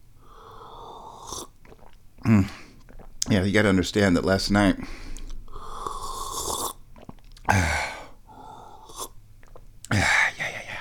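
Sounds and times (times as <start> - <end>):
soft mouth sounds: 0.2 - 3.4, 5.0 - 10.8
person sipping hot Gaoshan tea: 0.3 - 2.0, 5.2 - 9.7
speech: 2.2 - 2.6, 3.3 - 5.0.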